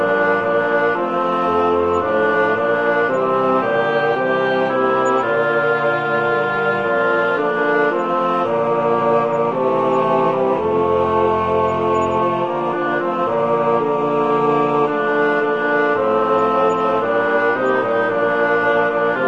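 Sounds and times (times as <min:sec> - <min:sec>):
woodwind music generated in notation software: 0:00.0 - 0:19.2.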